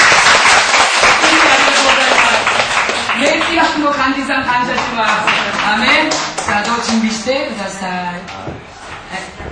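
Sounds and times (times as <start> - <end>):
audience applause: 0.0 - 6.9
speech: 3.8 - 9.3.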